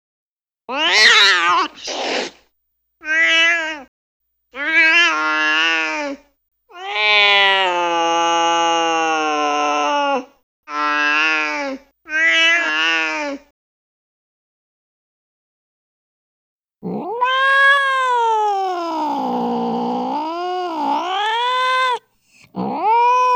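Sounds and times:
cat yowling and meowing: 0.7 - 2.3, 3.0 - 3.9, 4.6 - 13.4, 16.8 - 23.3.

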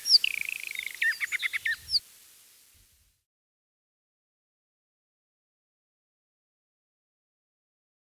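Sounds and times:
Eastern Orphean warbler song: 0.0 - 2.8.

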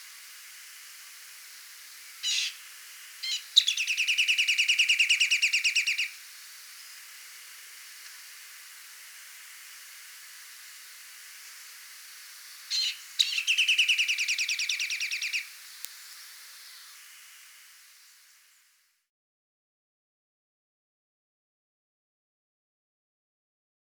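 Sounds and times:
rock nuthatch call notes: 1.9 - 6.9, 12.4 - 17.1.

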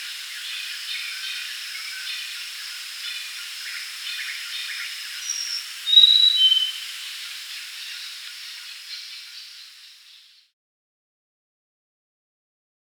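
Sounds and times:
insect noise: 0.0 - 10.5
grey-chested jungle flycatcher song: 5.2 - 7.1.

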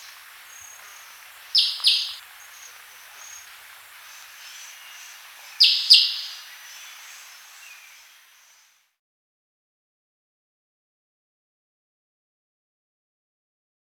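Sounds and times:
Crested jay giving high rattling calls: 0.0 - 8.1.

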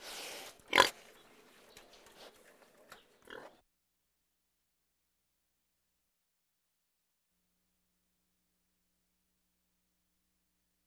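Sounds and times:
pig grunting: 0.0 - 3.6.

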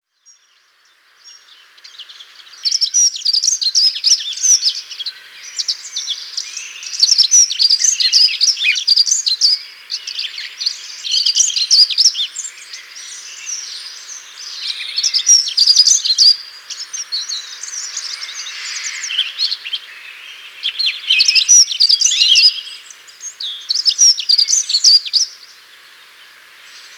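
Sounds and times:
Dunnock warbling song: 1.2 - 26.9.

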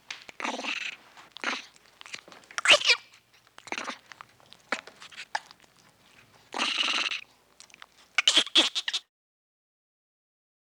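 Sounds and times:
monkey chatter: 0.3 - 4.1, 6.5 - 9.0.

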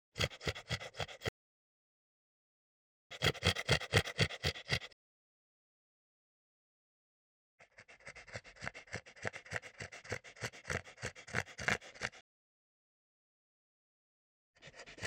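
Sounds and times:
French bulldog gasping and snorting: 0.2 - 1.3, 3.1 - 5.0, 7.6 - 12.2, 14.6 - 15.0.

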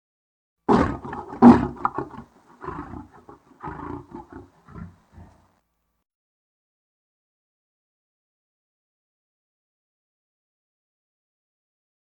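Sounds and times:
Asiatic lion roaring: 0.7 - 5.5.

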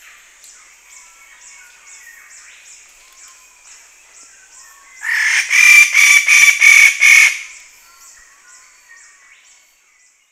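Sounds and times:
Wallace's standardwing harsh buzzy calls: 5.0 - 7.6.

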